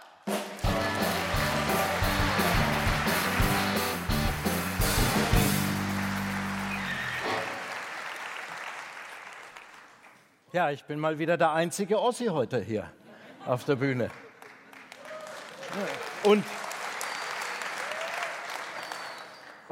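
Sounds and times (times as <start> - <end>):
roaring applause: 0.3 - 10.2, 14.1 - 19.7
speech: 10.6 - 14.2, 15.7 - 16.6.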